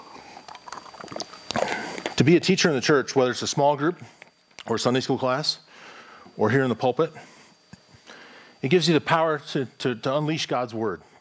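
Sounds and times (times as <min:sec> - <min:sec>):
person sipping water: 0:00.0 - 0:02.2
soft steady hum: 0:00.0 - 0:11.1
speech: 0:02.2 - 0:05.6, 0:06.4 - 0:07.3, 0:08.6 - 0:11.1.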